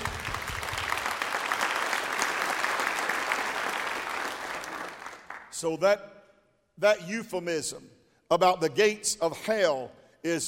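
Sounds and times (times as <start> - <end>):
audience hand clapping: 0.0 - 5.6
speech: 5.6 - 6.2, 6.8 - 10.4.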